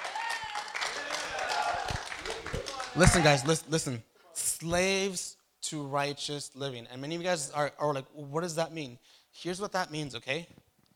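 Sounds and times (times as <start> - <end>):
audience applause: 0.0 - 3.6
speech: 3.0 - 10.6.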